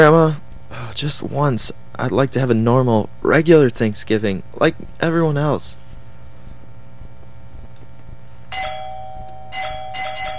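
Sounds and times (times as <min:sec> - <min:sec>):
speech: 0:00.0 - 0:00.4, 0:01.0 - 0:05.8
doorbell ringing: 0:08.5 - 0:10.3.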